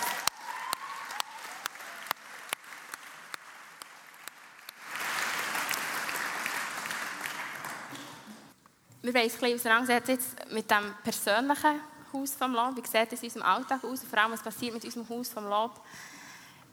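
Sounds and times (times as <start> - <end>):
audience applause: 0.0 - 8.5
speech: 9.0 - 16.1.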